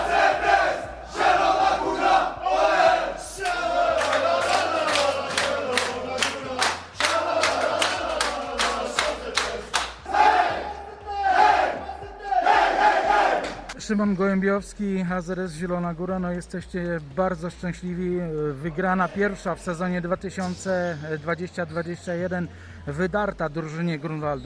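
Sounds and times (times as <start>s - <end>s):
team celebrating and cheering after match win: 0.0s - 13.7s
rhythmic clapping: 2.7s - 10.6s, 13.2s - 13.8s
speech: 13.9s - 24.4s.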